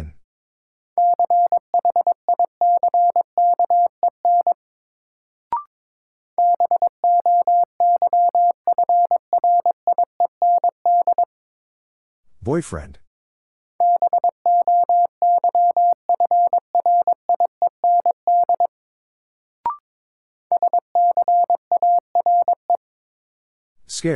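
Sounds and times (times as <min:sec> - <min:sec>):
Morse code tones at 22 wpm: 0:01.0 - 0:04.6, 0:06.4 - 0:11.2, 0:13.8 - 0:18.7, 0:20.5 - 0:22.8
speech: 0:12.4 - 0:13.0.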